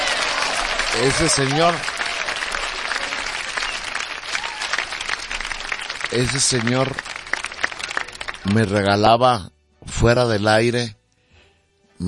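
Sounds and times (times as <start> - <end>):
audience applause: 0.0 - 8.8
speech: 1.0 - 1.9, 6.1 - 7.1, 8.4 - 11.0.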